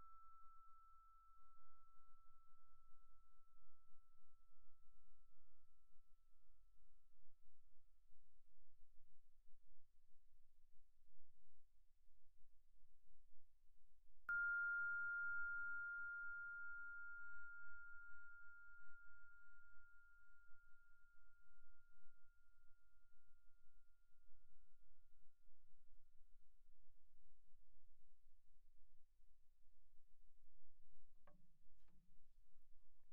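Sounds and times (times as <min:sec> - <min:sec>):
vibraphone sustained notes: 0:14.3 - 0:18.5.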